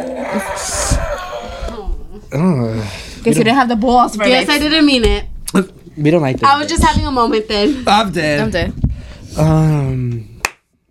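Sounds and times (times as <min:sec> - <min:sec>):
speech: 0:02.3 - 0:08.8, 0:09.4 - 0:10.3
loud hand clap: 0:10.4 - 0:10.7.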